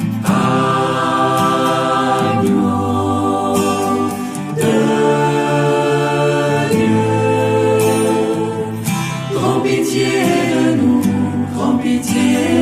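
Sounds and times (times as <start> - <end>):
choral mass music: 0.2 - 12.5.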